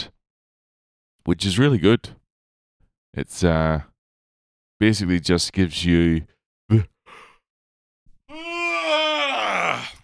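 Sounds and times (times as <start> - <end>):
speech: 1.2 - 2.2, 3.1 - 3.9, 4.8 - 6.9
person yawning: 8.3 - 10.0.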